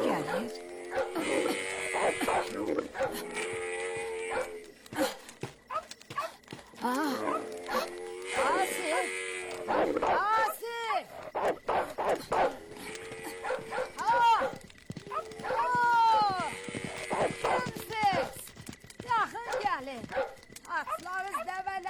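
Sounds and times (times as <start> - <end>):
people talking: 0.0 - 0.6, 6.8 - 9.1, 9.7 - 11.1, 14.0 - 14.6, 15.4 - 16.5, 17.1 - 20.1, 20.7 - 21.8
dogs barking: 0.0 - 5.1, 5.7 - 6.4, 7.1 - 16.4, 19.4 - 21.5.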